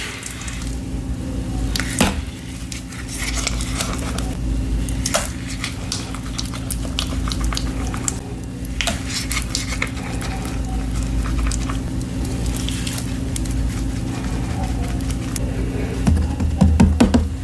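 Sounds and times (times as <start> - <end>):
black gym chalk crushed and mixed into paste: 0.0 - 17.4
steady low hum: 0.0 - 17.4
sharp crackles and scrapes: 1.6 - 15.4.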